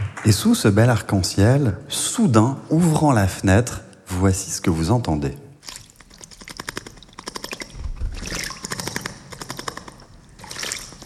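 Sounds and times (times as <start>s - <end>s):
speech: 0.2s - 5.4s
small bird bathing, splashing in water: 5.6s - 11.0s
small bird's wing flutters: 6.1s - 11.0s.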